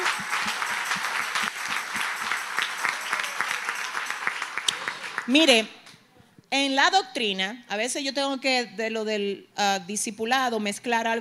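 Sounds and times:
church audience applauding: 0:00.0 - 0:05.5
speech: 0:05.3 - 0:05.8, 0:06.5 - 0:11.1.

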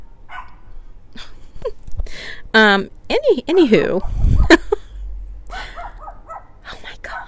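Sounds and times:
dog barking: 0:00.3 - 0:00.6, 0:05.5 - 0:07.2
speech: 0:02.6 - 0:04.2.

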